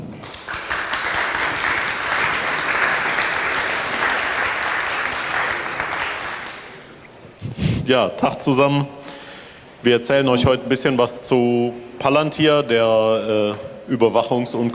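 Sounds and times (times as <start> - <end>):
audience applause: 0.0 - 7.0
speech: 7.9 - 9.0, 9.8 - 14.7.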